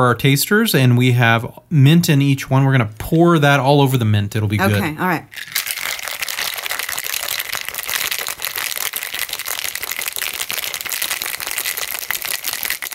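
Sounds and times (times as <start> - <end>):
speech: 0.0 - 5.6
ice rattling in a cocktail shaker being shaken hard: 5.3 - 12.9.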